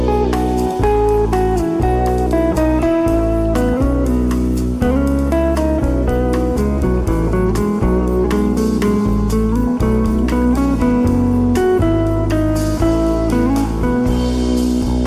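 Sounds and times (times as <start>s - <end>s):
deep bass line: 0.0s - 15.0s
drum hits and crisp cymbal taps: 0.0s - 15.0s
smooth jazz: 0.0s - 15.0s.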